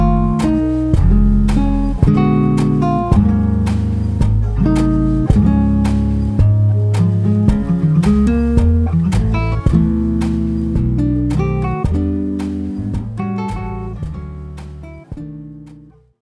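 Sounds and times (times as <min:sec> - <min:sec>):
classical guitar jazz: 0:00.0 - 0:16.2.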